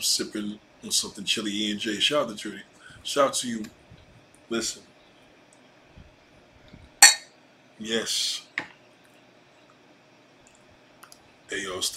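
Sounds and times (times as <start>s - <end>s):
speech: 0.0s - 3.8s, 4.5s - 4.9s, 7.8s - 8.7s, 11.5s - 11.9s
glasses clinking in a toast: 7.0s - 7.3s.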